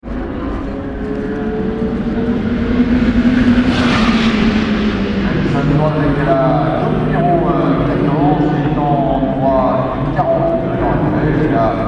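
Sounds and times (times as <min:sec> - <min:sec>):
Audi car at night: 0:00.0 - 0:11.8.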